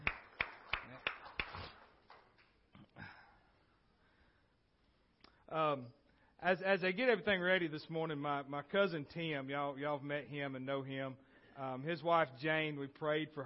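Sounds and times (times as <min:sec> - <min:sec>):
audience clapping: 0:00.0 - 0:02.4
speech: 0:05.5 - 0:13.4.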